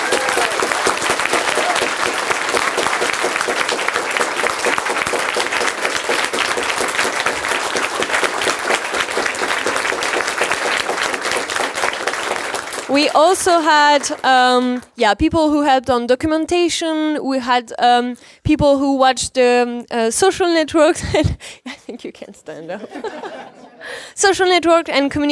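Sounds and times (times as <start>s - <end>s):
applause: 0.0s - 15.0s
speech: 13.2s - 25.3s
laughter: 22.6s - 23.9s.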